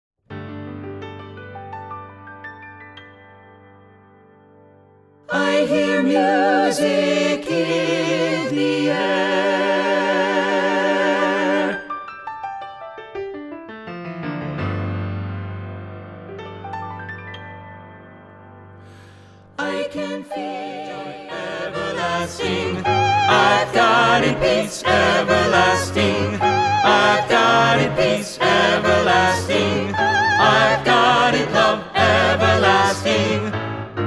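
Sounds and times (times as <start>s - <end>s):
SATB four-part choir singing: 5.3s - 11.9s, 19.5s - 33.9s.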